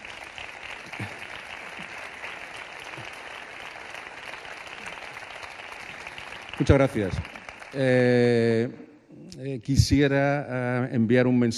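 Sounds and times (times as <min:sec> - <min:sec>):
audience applause: 0:00.0 - 0:08.3
speech: 0:06.6 - 0:08.8, 0:09.4 - 0:11.5.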